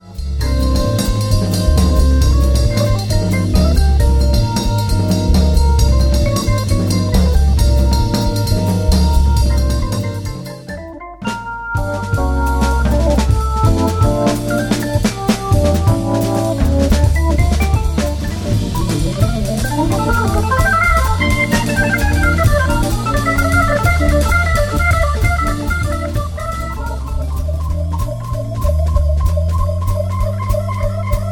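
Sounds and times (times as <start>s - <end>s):
jazz music: 0.0s - 31.3s.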